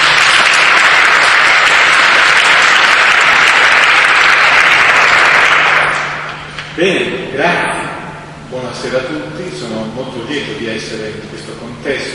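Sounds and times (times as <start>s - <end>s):
audience applauding: 0.0s - 6.6s
speech: 6.8s - 7.7s, 8.5s - 12.1s.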